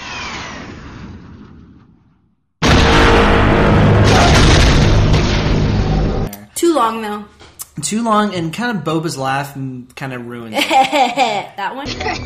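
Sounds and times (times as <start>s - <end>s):
Star Wars seismic charge explosion: 0.0s - 6.3s
rumble: 0.0s - 6.3s
speech: 6.8s - 12.2s
laughter: 10.6s - 12.2s.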